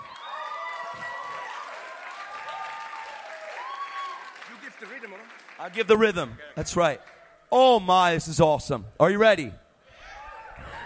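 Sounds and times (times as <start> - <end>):
crowd whooping and shouting: 0.0 - 4.4, 9.9 - 10.8
crowd applauding: 0.0 - 7.3
speech: 4.8 - 9.6.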